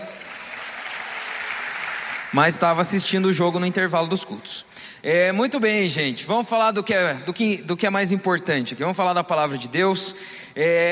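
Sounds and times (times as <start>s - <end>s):
audience applauding: 0.0s - 2.7s
speech: 2.3s - 10.9s.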